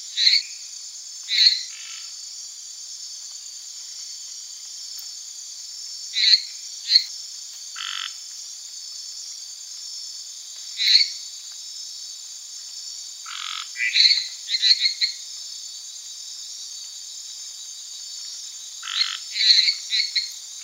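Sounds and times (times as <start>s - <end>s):
Hyla minuta frog: 0.0s - 0.7s, 1.3s - 2.2s, 6.1s - 7.1s, 7.7s - 8.2s, 10.7s - 11.3s, 13.2s - 15.3s, 18.8s - 20.6s.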